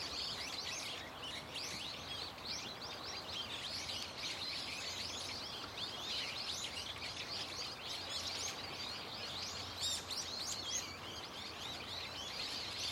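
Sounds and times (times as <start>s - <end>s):
birds chirping loudly: 0.0s - 12.9s.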